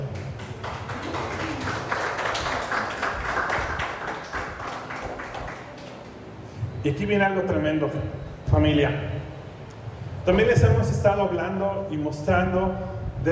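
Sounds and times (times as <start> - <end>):
audience applause: 0.2 - 6.3
speech: 6.8 - 9.2, 10.3 - 13.2.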